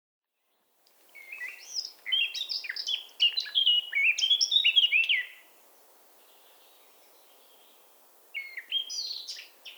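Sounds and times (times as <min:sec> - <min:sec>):
Eurasian blackcap Sylvia atricapilla singing: 0:01.2 - 0:05.4, 0:08.3 - 0:09.7.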